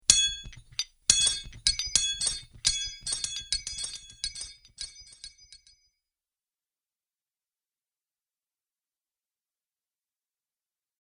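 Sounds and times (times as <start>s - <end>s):
metal chains: 0.1s - 5.7s.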